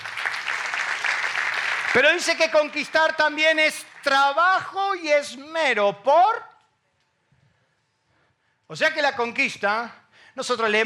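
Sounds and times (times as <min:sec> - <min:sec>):
applause: 0:00.0 - 0:04.7
speech: 0:02.0 - 0:06.5, 0:08.7 - 0:10.8.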